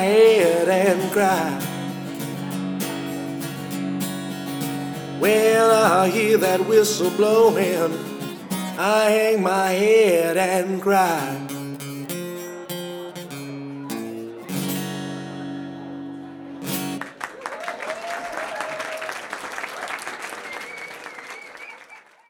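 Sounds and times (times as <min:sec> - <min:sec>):
live acoustic guitar playing: 0:00.0 - 0:17.2.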